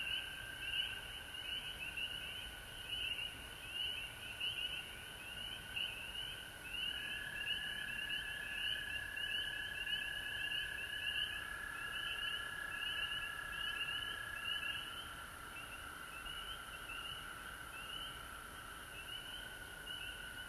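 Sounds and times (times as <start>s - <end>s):
frog chorus trilling: 0.0s - 20.4s.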